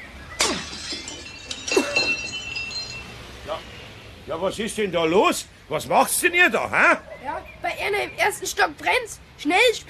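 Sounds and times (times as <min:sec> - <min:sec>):
workshop window glass shattering from a thrown paving stone: 0:00.4 - 0:03.2
falling glass shards tinkling: 0:00.4 - 0:03.4
speech: 0:04.3 - 0:09.8.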